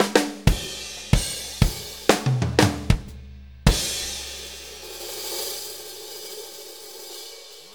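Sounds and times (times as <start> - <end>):
blues fill: 0.0 - 5.0.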